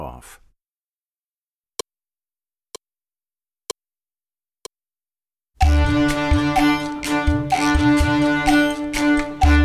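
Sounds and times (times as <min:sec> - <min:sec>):
bow beat: 0:05.6 - 0:09.6.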